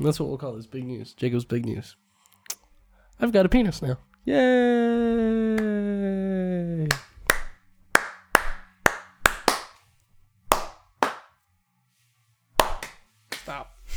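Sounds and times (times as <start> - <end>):
speech: 0.0 - 2.1, 3.2 - 7.0
hands clapping under a table: 6.9 - 9.8, 10.5 - 11.4, 12.6 - 13.6.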